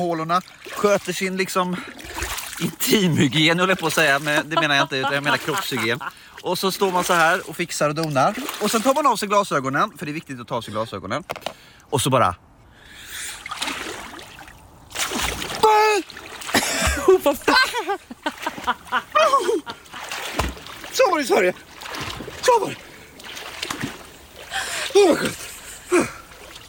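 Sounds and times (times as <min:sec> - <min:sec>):
speech: 0:00.0 - 0:02.0, 0:02.6 - 0:12.4, 0:17.2 - 0:19.8, 0:21.0 - 0:22.9, 0:25.0 - 0:26.1
person splashing in water: 0:00.0 - 0:10.0, 0:13.1 - 0:26.6
laughter: 0:02.9 - 0:06.2, 0:16.6 - 0:20.2
person whimpering in water: 0:24.6 - 0:26.2.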